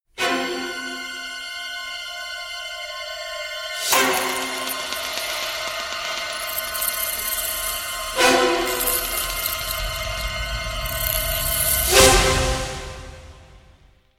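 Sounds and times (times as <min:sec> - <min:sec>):
shrieking strings: 0:00.5 - 0:13.6.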